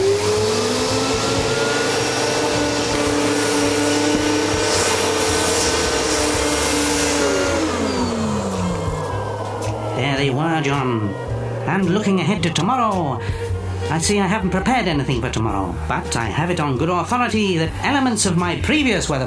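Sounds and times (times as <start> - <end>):
several vacuum cleaners droning: 0.0 - 19.2
speech: 10.6 - 19.2.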